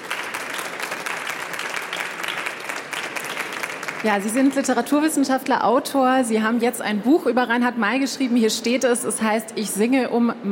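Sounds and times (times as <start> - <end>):
audience applause welcoming a guest: 0.0 - 4.8
speech: 4.0 - 10.5.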